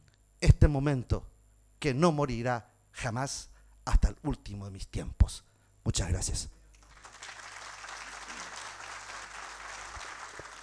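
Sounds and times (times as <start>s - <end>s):
speech: 0.6s - 6.6s
audience applause: 6.8s - 10.6s.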